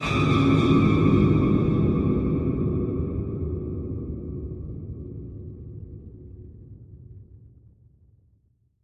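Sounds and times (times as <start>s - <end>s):
spooky ambience: 0.0s - 5.8s.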